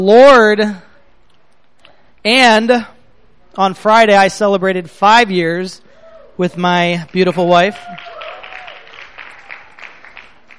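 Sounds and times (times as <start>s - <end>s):
speech: 0.0s - 0.9s, 2.2s - 3.0s, 3.6s - 5.8s, 6.4s - 8.2s
applause, hands clapping: 7.1s - 10.5s.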